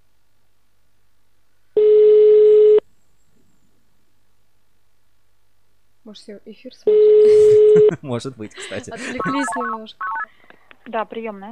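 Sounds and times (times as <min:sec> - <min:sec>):
unanswered telephone ringing tone: 0:01.8 - 0:02.8, 0:06.9 - 0:07.8
speech: 0:06.1 - 0:10.1, 0:10.9 - 0:11.5
laughter: 0:07.2 - 0:10.8.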